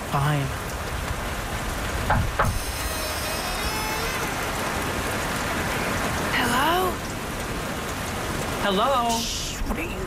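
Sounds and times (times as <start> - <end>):
steady hiss of rain: 0.0 - 10.0
speech: 0.2 - 0.7, 8.7 - 10.0
dull knocks on a door: 2.1 - 2.6.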